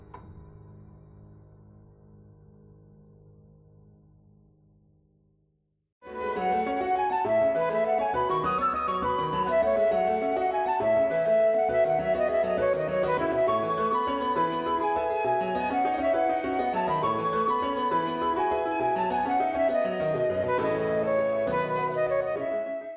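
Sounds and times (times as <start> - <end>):
piano cover: 6.1 - 22.9.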